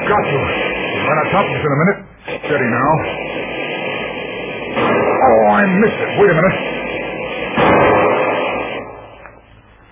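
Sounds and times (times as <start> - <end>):
speech: 0.1 - 3.2, 4.8 - 6.7
Garand rifle gunshot: 4.8 - 5.5, 7.5 - 9.2.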